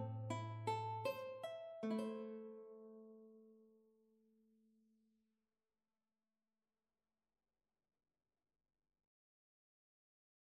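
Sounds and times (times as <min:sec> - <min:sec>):
mandolin: 0:00.0 - 0:03.2
guitar: 0:00.0 - 0:03.6.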